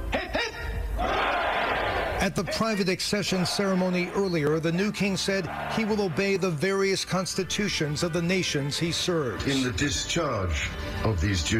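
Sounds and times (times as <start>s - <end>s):
crowd shouting hurrah: 1.0s - 2.2s, 5.4s - 6.8s
shouted calls: 1.0s - 2.2s, 5.4s - 6.5s
speech: 2.2s - 11.5s.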